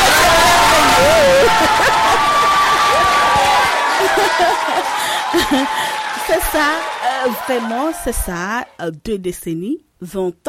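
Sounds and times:
laughter: 0.0 - 8.3
applause: 0.0 - 8.8
speech: 5.5 - 10.4.

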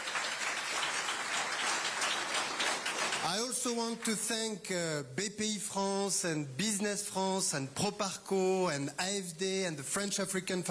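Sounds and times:
audience applause: 0.0 - 3.5
speech: 3.2 - 10.6.

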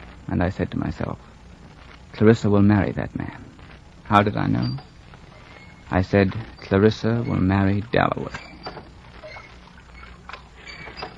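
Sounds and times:
speech: 0.3 - 1.3, 2.2 - 3.5, 4.1 - 4.9, 5.9 - 8.5
oars creaking in oarlocks: 8.3 - 11.1.

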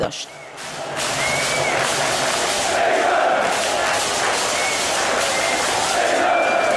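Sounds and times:
whistles: 0.2 - 2.0, 4.3 - 6.7
football fans chanting and cheering: 0.2 - 6.7.

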